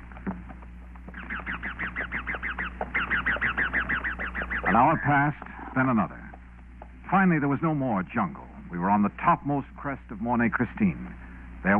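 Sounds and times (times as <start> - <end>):
wild parrots screeching: 1.1 - 5.3
speech: 4.7 - 6.2, 7.1 - 11.7.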